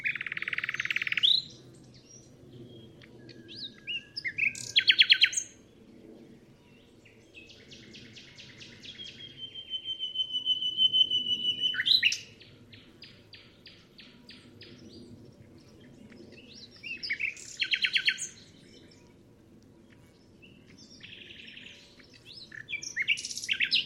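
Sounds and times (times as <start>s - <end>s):
nightingale singing: 0.0s - 5.5s, 7.4s - 14.8s, 16.0s - 19.1s, 19.9s - 23.8s.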